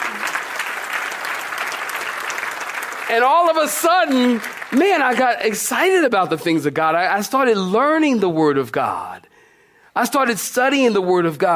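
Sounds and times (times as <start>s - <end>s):
audience clapping hands: 0.0s - 6.3s
speech: 3.1s - 9.2s, 10.0s - 11.5s.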